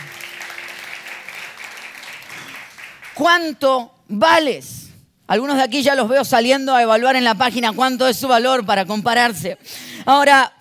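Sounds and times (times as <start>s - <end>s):
crowd applauding: 0.0s - 3.2s
speech: 3.2s - 10.5s.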